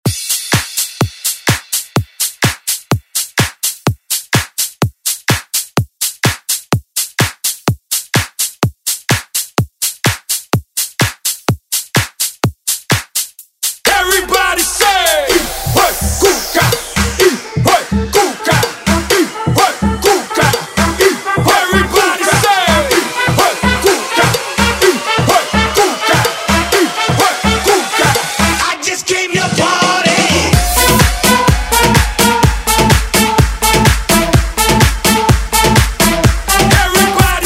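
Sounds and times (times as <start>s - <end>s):
Latin dance music: 0.0s - 37.4s.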